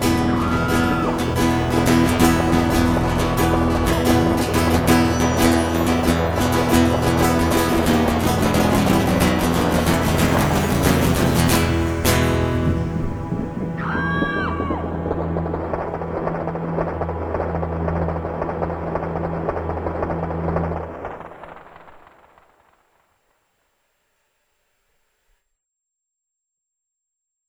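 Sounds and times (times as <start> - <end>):
blues music: 0.0 - 21.2.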